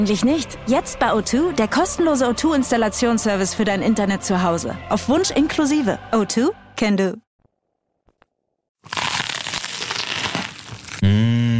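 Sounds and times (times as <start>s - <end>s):
speech: 0.0s - 7.2s
crunching crisp food: 8.8s - 11.1s
person humming: 11.0s - 11.5s.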